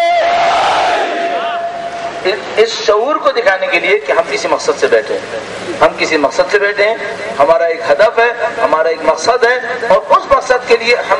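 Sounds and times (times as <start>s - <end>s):
crowd chanting a slogan at a Shia mourning gathering: 0.2s - 1.8s
speech: 2.6s - 11.1s.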